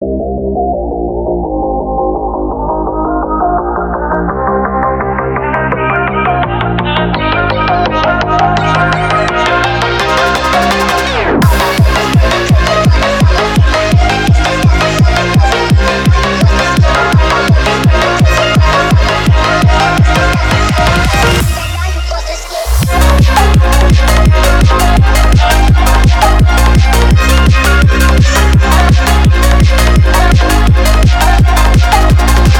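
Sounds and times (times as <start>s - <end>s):
sped up phonk music: 0.1s - 32.5s.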